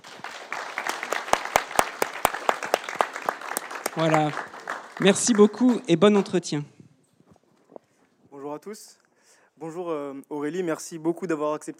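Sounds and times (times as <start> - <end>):
audience applause: 0.0 - 6.6
speech: 4.0 - 6.7, 8.7 - 9.0, 9.6 - 11.7.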